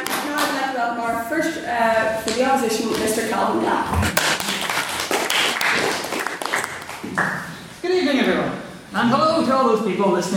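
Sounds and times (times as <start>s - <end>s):
speech: 0.8s - 4.4s, 7.2s - 10.3s
audience applause at a formal debate after a maiden speech: 4.2s - 7.4s.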